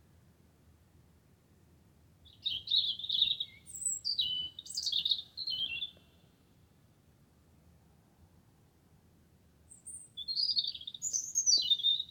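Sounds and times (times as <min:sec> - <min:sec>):
wren singing: 0:02.3 - 0:06.0, 0:10.2 - 0:12.1.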